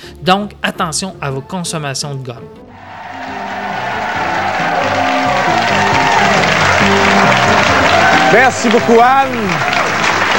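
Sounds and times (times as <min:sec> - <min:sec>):
speech: 0:00.0 - 0:02.7, 0:08.3 - 0:09.8
studio audience applause: 0:02.8 - 0:10.3
television studio audience of people from Quebec cheering and screaming: 0:02.8 - 0:10.3.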